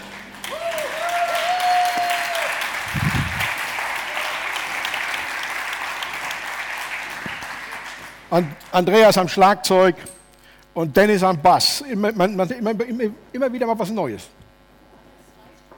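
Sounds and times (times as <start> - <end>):
crowd applauding for the band: 0.0 - 8.6
speech: 8.3 - 10.2, 10.8 - 14.4.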